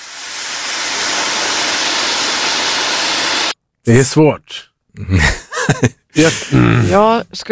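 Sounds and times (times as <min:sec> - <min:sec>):
bacon sizzling in a frying pan: 0:00.0 - 0:03.5
speech: 0:03.9 - 0:07.5
laughter: 0:05.0 - 0:06.8.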